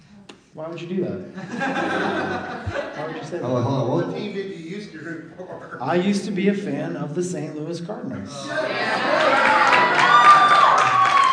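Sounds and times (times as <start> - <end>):
speech: 0.6 - 9.7
laughter: 1.3 - 6.1, 8.4 - 11.1
crowd clapping and cheering: 8.6 - 11.3.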